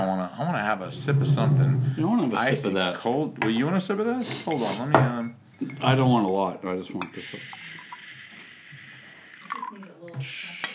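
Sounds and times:
speech: 0.0s - 7.7s
whiskey being poured over ice: 5.8s - 10.7s.

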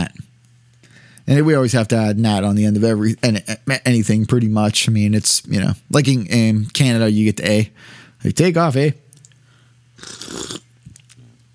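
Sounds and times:
speech: 1.3s - 9.0s, 10.0s - 10.6s
slurping coffee: 10.0s - 11.2s.

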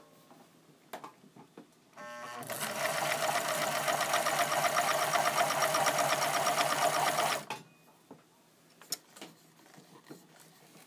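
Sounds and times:
sewing: 2.0s - 7.5s.

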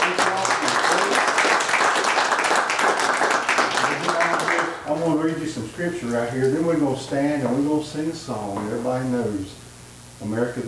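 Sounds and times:
round of applause: 0.0s - 5.0s
speech: 5.8s - 9.6s, 10.2s - 10.6s.

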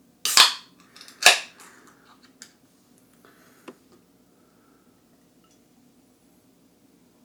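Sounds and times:
beer being opened: 0.3s - 1.7s.

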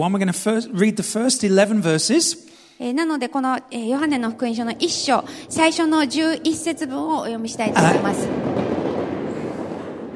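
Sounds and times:
speech: 0.0s - 8.7s
train rushing past: 4.0s - 10.1s.

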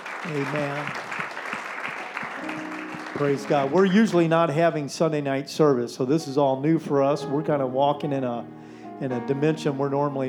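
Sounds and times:
people clapping: 0.0s - 4.5s
speech: 0.2s - 1.1s, 2.4s - 10.2s.

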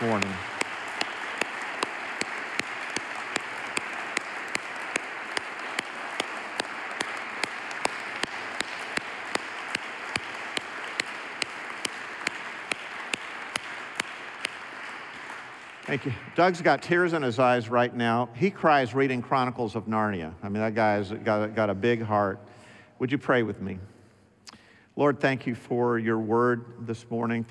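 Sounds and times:
church congregation applauding at Lake Baldwin Church: 0.0s - 16.4s
speech: 15.9s - 23.9s, 25.0s - 27.4s.

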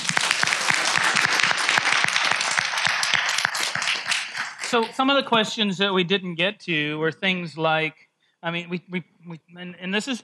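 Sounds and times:
crowd applauding: 0.0s - 5.0s
speech: 4.7s - 10.2s.

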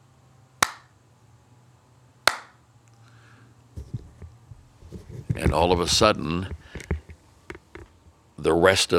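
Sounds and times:
rhythmic hand clapping: 0.6s - 0.9s, 2.3s - 2.5s
speech: 5.5s - 6.9s, 8.4s - 8.9s.

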